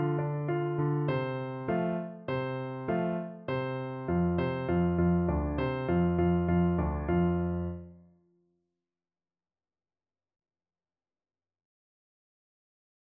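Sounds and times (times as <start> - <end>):
piano: 0.0 - 8.2.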